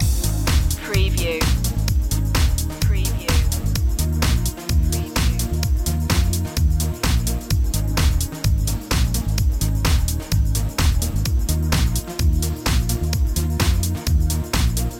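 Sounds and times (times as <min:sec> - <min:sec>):
beat loop: 0:00.0 - 0:14.9.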